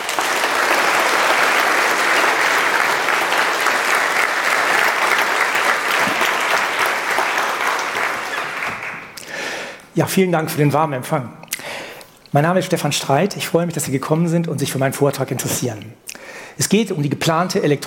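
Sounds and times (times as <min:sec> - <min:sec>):
audience applause: 0:00.0 - 0:09.2
speech: 0:10.0 - 0:11.4, 0:12.3 - 0:17.8.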